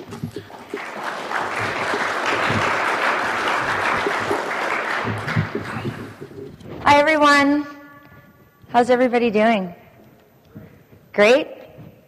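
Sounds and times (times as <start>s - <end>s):
audience applause welcoming a speaker at a presentation: 0.0s - 6.5s
speech: 6.9s - 7.7s, 8.7s - 9.8s, 11.2s - 11.6s.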